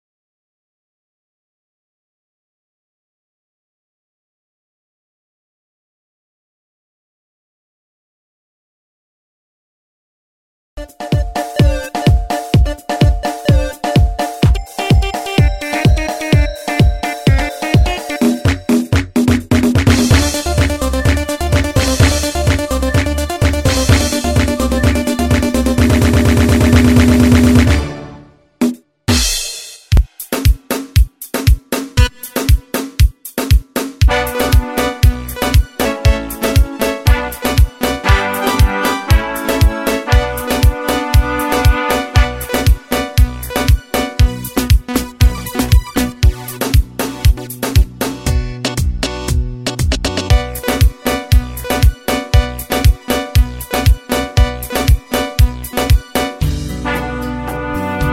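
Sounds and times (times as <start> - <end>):
techno music: 10.8 - 28.3, 30.0 - 58.1.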